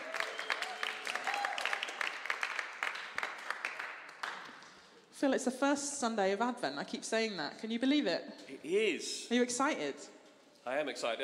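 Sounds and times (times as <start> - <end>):
audience applause: 0.0 - 4.7
speech: 5.2 - 11.2.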